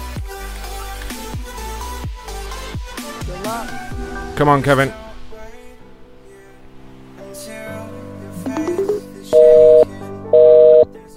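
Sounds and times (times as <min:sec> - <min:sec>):
speech: 0:03.4 - 0:05.0
telephone left off the receiver stepped electronic beeps: 0:08.6 - 0:10.9.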